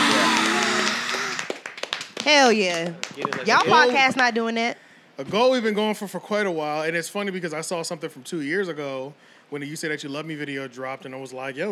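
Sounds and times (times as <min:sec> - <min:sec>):
crowd clapping sound effect: 0:00.0 - 0:04.3
speech: 0:02.2 - 0:11.6.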